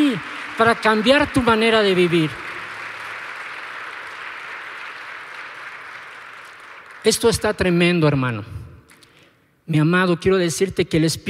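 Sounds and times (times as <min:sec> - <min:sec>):
audience applause: 0:00.0 - 0:07.7
speech: 0:00.1 - 0:02.5, 0:07.0 - 0:08.6, 0:09.7 - 0:11.2.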